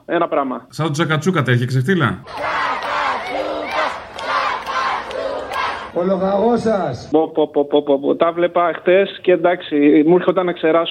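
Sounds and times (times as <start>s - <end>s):
speech: 0.1s - 3.4s, 6.0s - 10.9s
large crowd chanting in unison: 2.2s - 6.0s.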